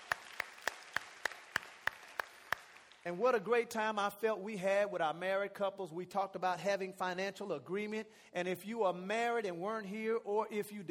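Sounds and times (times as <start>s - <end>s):
audience clapping hands in unison: 0.0s - 3.2s
speech: 3.0s - 10.8s.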